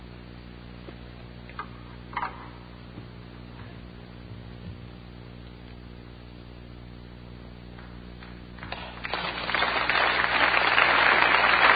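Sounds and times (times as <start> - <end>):
audience applause: 8.6 - 11.7.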